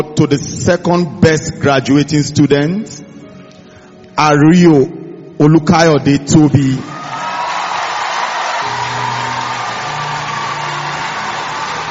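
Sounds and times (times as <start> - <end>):
speech: 0.0 - 3.1, 4.2 - 7.0
audience clapping: 7.0 - 11.8.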